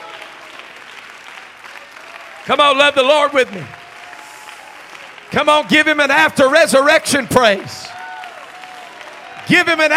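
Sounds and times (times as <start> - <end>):
audience clapping hands: 0.0 - 9.9
speech: 2.4 - 3.8, 5.3 - 7.8, 9.5 - 9.9.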